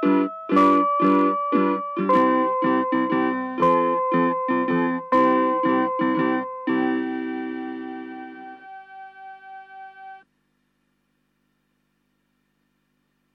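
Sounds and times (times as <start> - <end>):
melody: 0.0 - 10.2.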